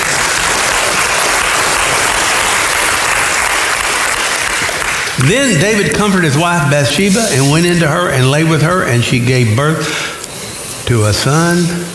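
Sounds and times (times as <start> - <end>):
applause: 0.0 - 5.9
speech: 5.2 - 10.0, 10.9 - 11.9.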